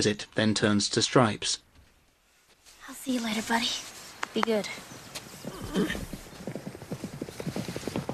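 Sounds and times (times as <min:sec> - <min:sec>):
speech: 0:00.0 - 0:01.6, 0:03.0 - 0:05.0, 0:05.7 - 0:06.2
thoroughbreds galloping on a racetrack: 0:02.9 - 0:08.1
horse whinnying: 0:05.4 - 0:07.4.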